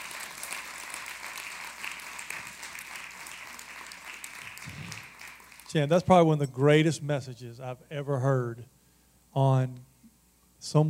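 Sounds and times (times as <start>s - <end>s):
audience applause: 0.0s - 5.8s
speech: 5.7s - 9.9s, 10.6s - 10.8s.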